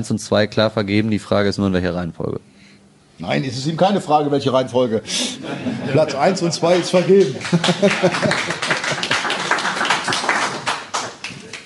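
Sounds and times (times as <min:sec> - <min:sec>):
speech: 0:00.0 - 0:02.5, 0:03.2 - 0:08.6
laughter: 0:05.1 - 0:10.2
applause from a small group: 0:06.6 - 0:11.6.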